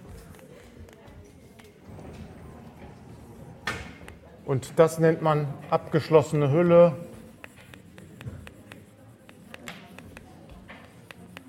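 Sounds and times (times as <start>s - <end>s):
handwriting during a lecture: 0.0s - 1.7s, 6.0s - 11.4s
speech: 4.5s - 7.1s.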